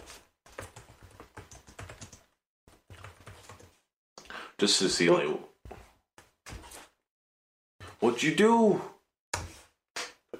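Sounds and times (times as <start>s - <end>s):
computer keyboard typing: 0.5s - 3.8s
speech: 4.6s - 5.5s, 8.2s - 8.9s.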